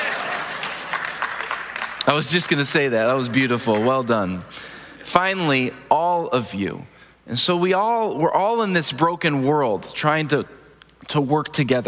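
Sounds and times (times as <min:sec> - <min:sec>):
audience clapping: 0:00.0 - 0:04.4
speech: 0:02.1 - 0:11.8.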